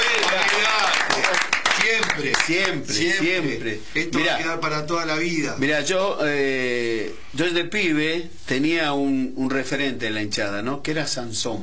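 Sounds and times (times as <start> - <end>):
applause: 0.0 - 2.9
speech: 2.2 - 11.6.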